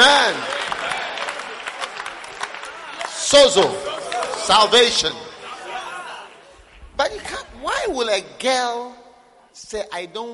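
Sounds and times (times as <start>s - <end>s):
crowd clapping: 0.0s - 7.4s
speech: 3.4s - 3.9s, 4.5s - 5.3s, 7.0s - 9.0s, 9.6s - 10.3s.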